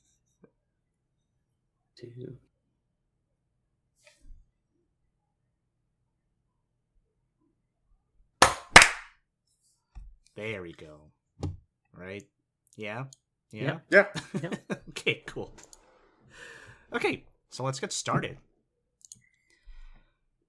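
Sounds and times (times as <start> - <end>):
speech: 2.0 - 2.5, 10.4 - 15.7, 16.9 - 18.5
hand clap for audio sync: 8.4 - 9.2
laughter: 14.1 - 15.6.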